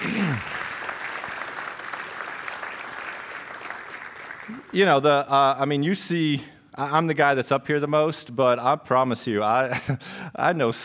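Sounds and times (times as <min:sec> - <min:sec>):
audience applauding: 0:00.0 - 0:05.0
speech: 0:04.7 - 0:10.8.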